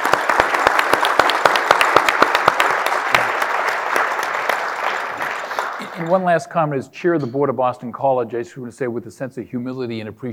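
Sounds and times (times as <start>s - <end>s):
audience applause: 0.0s - 6.4s
speech: 6.1s - 10.3s.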